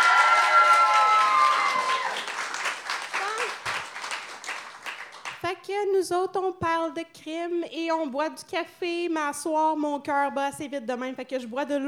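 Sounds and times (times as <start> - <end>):
audience applause: 0.0 - 5.4
speech: 5.7 - 11.8.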